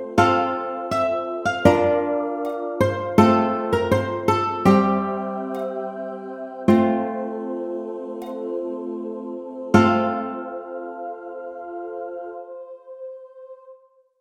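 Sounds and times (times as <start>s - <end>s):
ukulele playing a folk tune: 0.0s - 8.9s, 9.8s - 10.5s.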